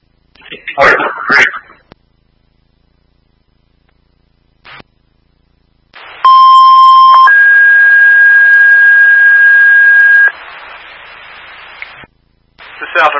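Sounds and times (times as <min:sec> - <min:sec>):
radio hiss: 0:00.1 - 0:03.0, 0:03.9 - 0:05.2, 0:05.8 - 0:13.1
fire alarm test tones: 0:06.3 - 0:10.3.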